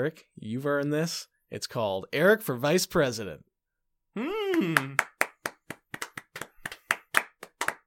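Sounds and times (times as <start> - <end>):
speech: 0.0 - 3.5, 4.2 - 5.1
people clapping in the booth: 4.4 - 7.8.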